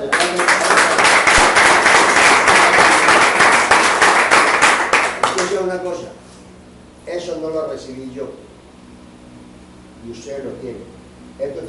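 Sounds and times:
loud applause: 0:00.0 - 0:05.6
speech: 0:07.8 - 0:08.4, 0:10.0 - 0:11.6.

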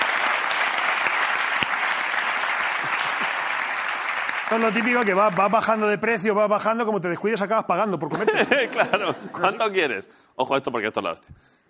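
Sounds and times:
audience applause: 0:00.0 - 0:06.0
speech: 0:04.5 - 0:11.6
laughter: 0:08.0 - 0:10.0.

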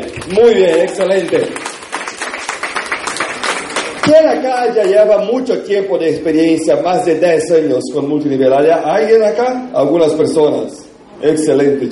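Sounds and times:
audience applause: 0:00.0 - 0:04.2
speech: 0:00.3 - 0:01.7, 0:04.1 - 0:11.9.

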